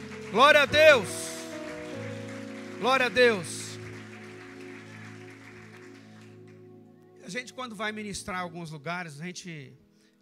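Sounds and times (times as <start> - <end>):
audience applause: 0.0 - 6.7
speech: 0.3 - 1.2, 2.8 - 3.6, 7.3 - 9.8.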